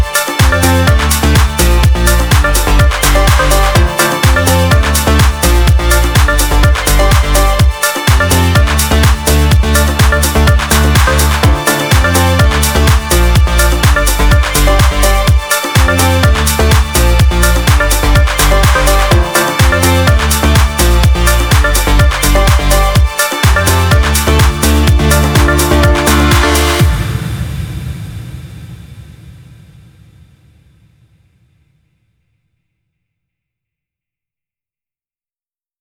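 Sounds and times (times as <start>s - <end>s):
EDM kick drum: 0.0s - 27.4s.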